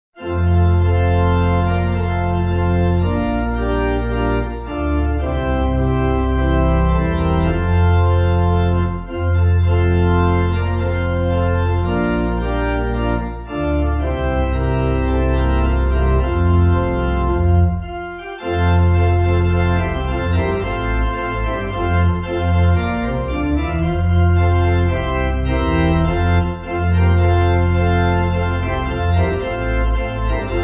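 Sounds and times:
pipe organ: 0:00.2 - 0:30.6.

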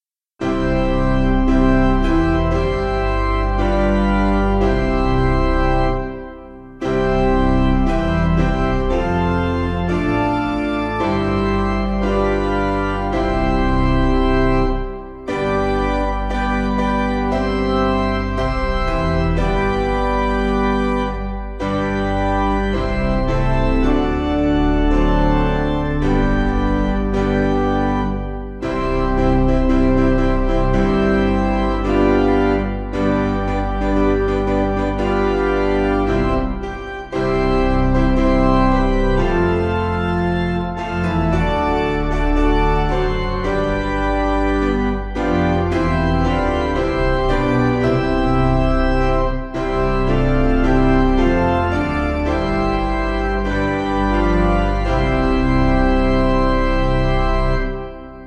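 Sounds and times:
piano backing music: 0:00.4 - 0:58.2.

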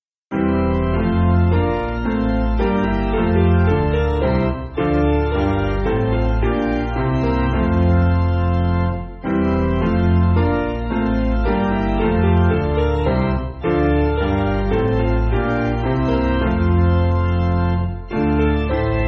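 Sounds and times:
piano backing music: 0:00.3 - 0:19.0.

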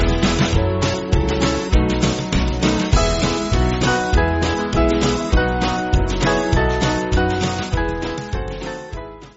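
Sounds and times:
small band playing church backing music: 0:00.0 - 0:09.2.

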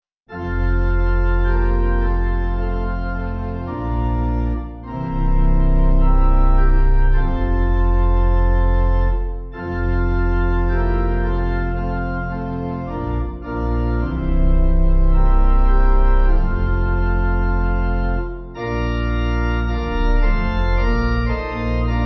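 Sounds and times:
pipe organ: 0:00.3 - 0:22.0.

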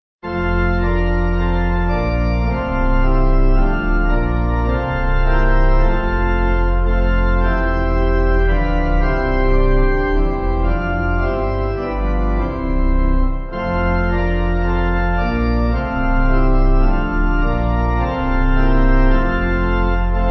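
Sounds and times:
pipe organ backing: 0:00.2 - 0:20.2.

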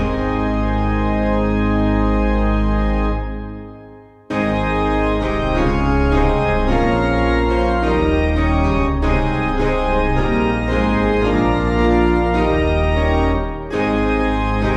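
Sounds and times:
organ piano note in A flat: 0:00.0 - 0:14.7.

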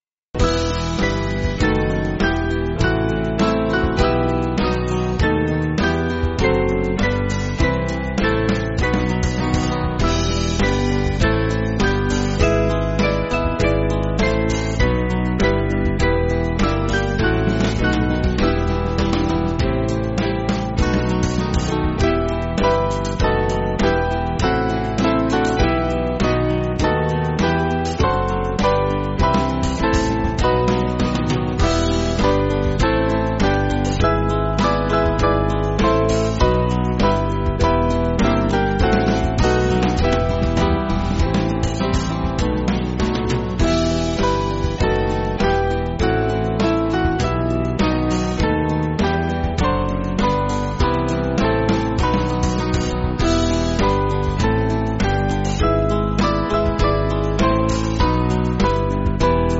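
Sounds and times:
band backing music: 0:00.4 - 0:59.5.

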